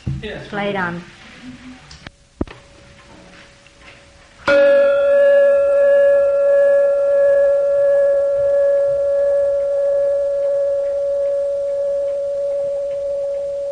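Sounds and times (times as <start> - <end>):
speech: 0.2 - 1.9
small replica bell ringing: 4.5 - 13.6.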